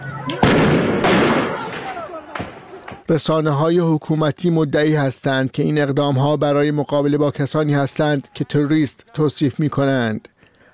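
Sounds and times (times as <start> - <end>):
live gunfire at protesters: 0.2 - 3.0
speech: 3.1 - 10.3.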